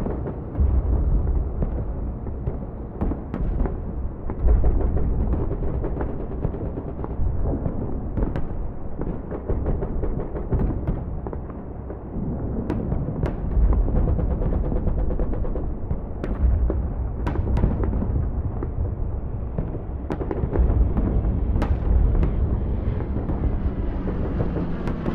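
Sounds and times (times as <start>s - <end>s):
distant WW2 battle: 0.0s - 25.1s.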